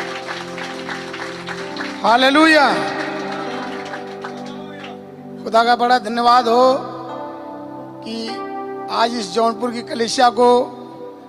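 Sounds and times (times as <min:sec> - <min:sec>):
audience applause: 0:00.0 - 0:05.0
speech: 0:02.0 - 0:02.9, 0:05.4 - 0:06.9, 0:08.0 - 0:10.8.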